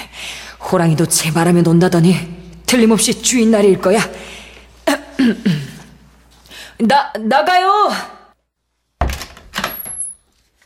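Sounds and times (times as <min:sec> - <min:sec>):
speech: 0:00.7 - 0:04.4, 0:05.2 - 0:05.6, 0:06.8 - 0:08.2
inn room door being opened: 0:09.0 - 0:10.2.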